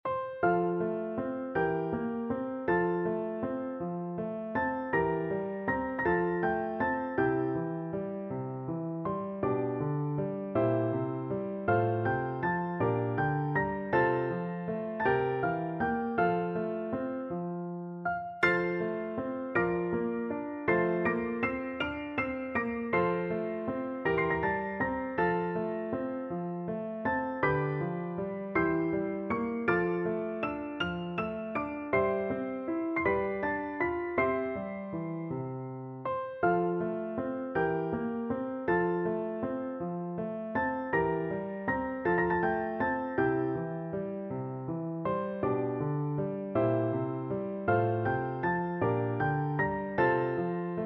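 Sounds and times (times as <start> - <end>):
piano duet: 0.0 - 50.8.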